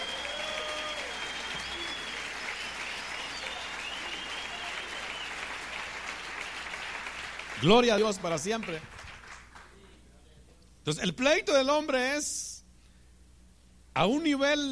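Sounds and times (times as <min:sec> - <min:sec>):
audience applause: 0:00.0 - 0:09.7
speech: 0:07.6 - 0:09.0, 0:10.8 - 0:12.5, 0:14.0 - 0:14.7.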